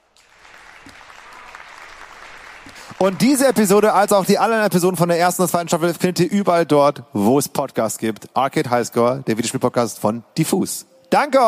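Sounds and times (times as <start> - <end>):
crowd applause: 0.0 - 4.3
speech: 3.0 - 11.4.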